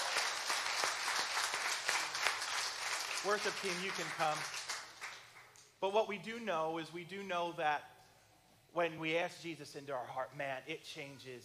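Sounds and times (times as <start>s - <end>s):
audience clapping: 0.0s - 5.6s
speech: 3.2s - 4.6s, 5.8s - 7.9s, 8.7s - 11.4s.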